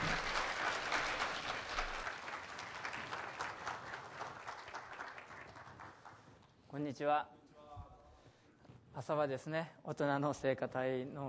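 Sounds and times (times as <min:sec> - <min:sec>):
applause welcoming a speaker: 0:00.0 - 0:06.8
speech: 0:06.8 - 0:07.4, 0:09.0 - 0:11.2.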